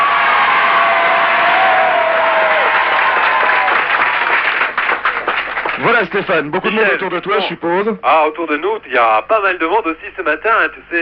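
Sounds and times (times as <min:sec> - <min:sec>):
large beach crowd applauding: 0:00.0 - 0:07.0
speech: 0:06.0 - 0:10.9.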